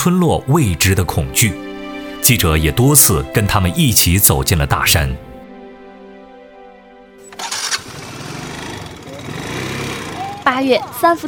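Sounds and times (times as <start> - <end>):
speech: 0.0 - 5.3, 10.4 - 11.2
small motorcycle engine on a ride to a village in the Wuling mountains: 7.3 - 11.0.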